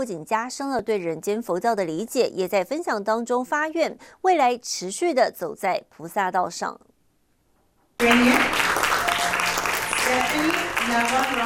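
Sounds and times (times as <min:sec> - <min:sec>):
speech: 0:00.0 - 0:06.9, 0:08.0 - 0:08.6, 0:10.9 - 0:11.4
warm audience applause: 0:08.0 - 0:11.4.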